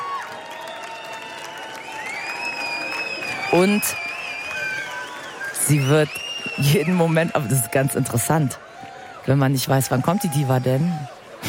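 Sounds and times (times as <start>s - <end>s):
crowd clapping for performer: 0.0s - 11.4s
sustained high whistles: 0.5s - 7.2s
speech: 3.5s - 4.1s, 5.7s - 8.6s, 9.2s - 11.2s.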